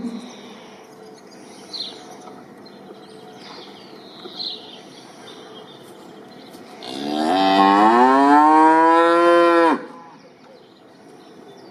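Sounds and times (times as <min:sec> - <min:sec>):
cow mooing: 0:06.8 - 0:10.0.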